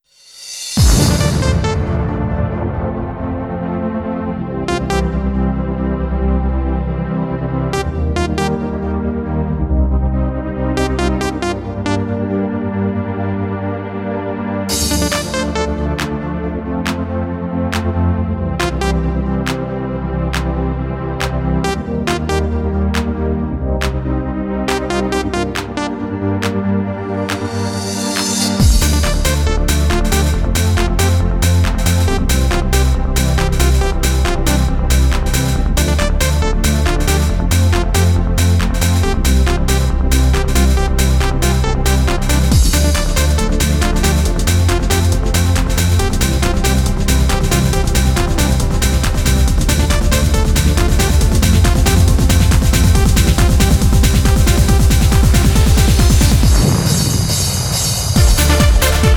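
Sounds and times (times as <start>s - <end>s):
trance music: 0.3s - 59.1s.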